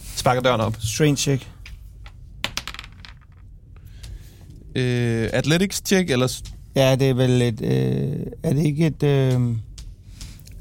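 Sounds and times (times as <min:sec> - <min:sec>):
speech: 0:00.2 - 0:01.6, 0:04.7 - 0:09.7
dice tumbling across a hard surface: 0:01.6 - 0:03.6.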